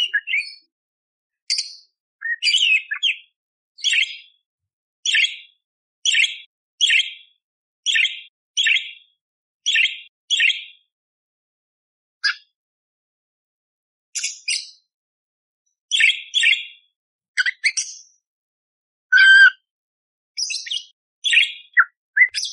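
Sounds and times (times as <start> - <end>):
Eurasian tree sparrow fighting song chirps: 0.0 - 0.6, 1.5 - 4.3, 5.1 - 5.5, 6.1 - 7.2, 7.9 - 10.7, 15.9 - 16.8, 17.4 - 18.1, 19.1 - 19.5, 20.4 - 22.5.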